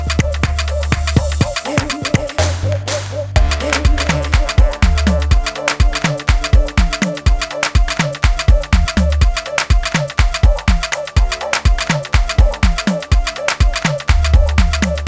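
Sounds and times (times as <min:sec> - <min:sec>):
rainforest spiritual Afro drum: 0:00.0 - 0:02.6, 0:03.4 - 0:15.0.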